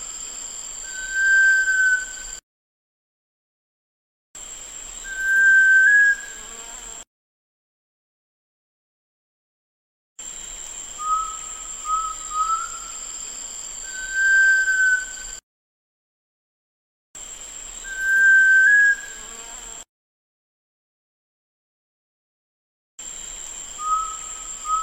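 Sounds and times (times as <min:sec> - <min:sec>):
sunbittern whistling: 0:00.8 - 0:02.4, 0:05.0 - 0:06.4, 0:11.0 - 0:13.0, 0:13.8 - 0:15.4, 0:17.8 - 0:19.2, 0:23.8 - 0:24.8.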